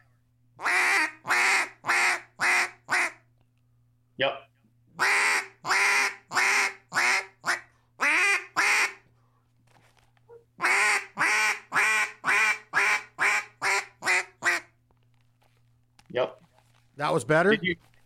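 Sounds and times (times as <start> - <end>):
duck call blown in mallard-style quacks: 0.6 - 3.2, 5.0 - 9.0, 10.6 - 14.8
speech: 4.2 - 5.1, 17.0 - 17.9.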